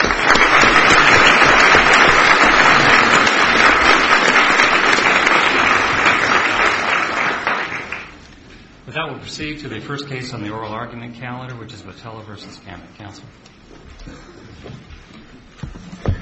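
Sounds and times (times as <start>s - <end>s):
applause in a courtroom: 0.0s - 8.2s
speech: 9.2s - 15.2s.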